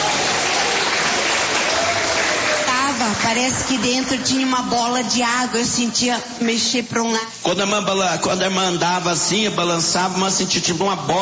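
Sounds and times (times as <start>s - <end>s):
congregation clapping at a church service: 0.0s - 5.0s
speech: 3.3s - 11.2s.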